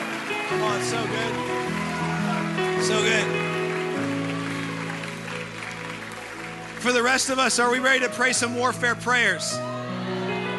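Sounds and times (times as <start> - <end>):
church congregation round of applause: 0.0 - 9.5
sustained musical chords: 0.0 - 10.5
speech: 0.5 - 1.9, 2.6 - 3.6, 6.8 - 9.8.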